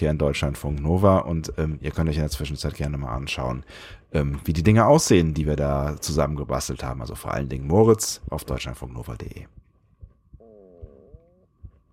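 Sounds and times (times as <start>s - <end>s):
speech: 0.0s - 9.6s
stomach rumbling: 9.5s - 11.9s.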